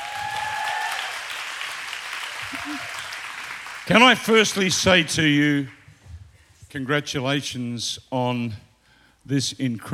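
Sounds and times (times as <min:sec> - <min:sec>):
audience applause for musicians: 0:00.0 - 0:05.0
speech: 0:02.6 - 0:03.0, 0:03.9 - 0:05.8, 0:06.7 - 0:09.9.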